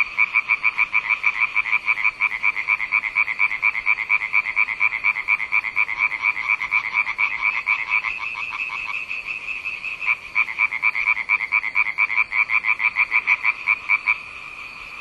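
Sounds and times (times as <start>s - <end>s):
frog croaking: 0.0s - 14.9s.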